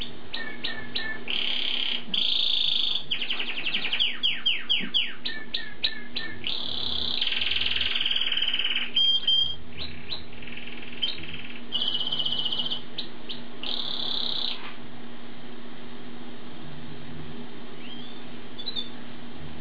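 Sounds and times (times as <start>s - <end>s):
songbird singing: 0.0s - 14.7s, 17.7s - 19.1s.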